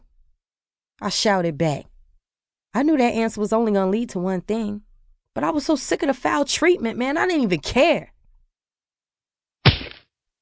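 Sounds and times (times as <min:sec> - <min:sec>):
speech: 0:01.0 - 0:01.9, 0:02.8 - 0:08.1
hand slapping across a face: 0:09.6 - 0:10.0.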